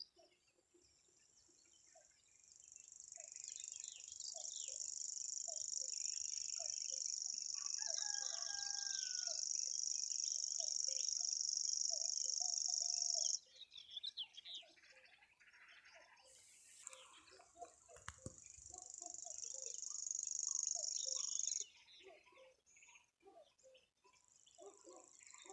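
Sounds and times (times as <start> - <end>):
other birds chirping and warbling: 2.0 - 15.7, 16.3 - 22.9, 23.8 - 25.5
common grasshopper warbler reeling: 3.0 - 13.4, 16.4 - 21.6.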